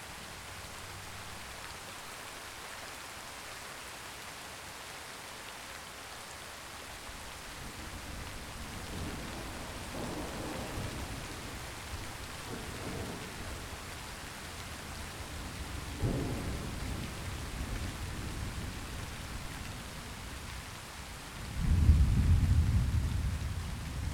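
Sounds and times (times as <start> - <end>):
rain: 0.0 - 24.1.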